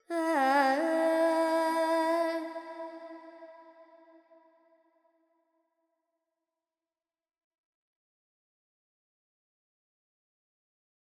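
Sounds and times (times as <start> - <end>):
Carnatic female alap in raga Panthuvarali: 0.0 - 3.2.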